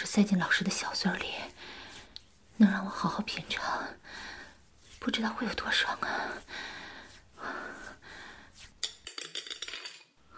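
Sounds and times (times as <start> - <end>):
speech: 0.2 - 1.8, 2.6 - 4.3, 5.0 - 6.8
soft breathing and gasps: 3.6 - 4.6, 6.0 - 8.7.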